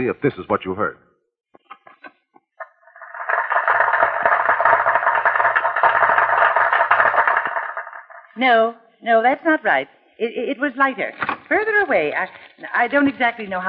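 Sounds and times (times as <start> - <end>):
speech: 0.0 - 1.1, 8.4 - 13.6
crowd applauding recorded on a tape machine: 3.0 - 8.2.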